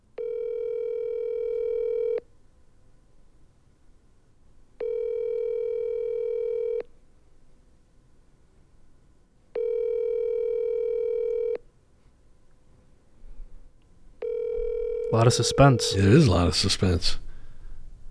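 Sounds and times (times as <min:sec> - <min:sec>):
telephone ringing tones of a call being placed: 0:00.2 - 0:02.2, 0:04.8 - 0:06.8, 0:09.6 - 0:11.6, 0:14.2 - 0:16.3
speech: 0:15.2 - 0:17.2.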